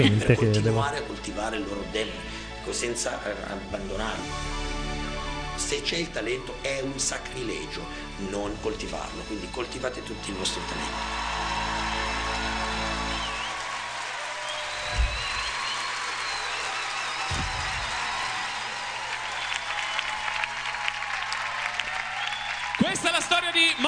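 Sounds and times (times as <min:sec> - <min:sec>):
speech: 0:00.0 - 0:04.6, 0:05.6 - 0:11.3
audience applause: 0:10.3 - 0:23.8.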